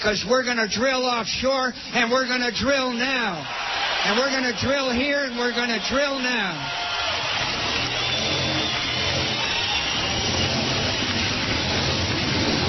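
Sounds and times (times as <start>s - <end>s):
speech: 0.0s - 6.9s
Harley-Davidson motorcycles roaring at rally in Sturgis: 7.4s - 12.6s.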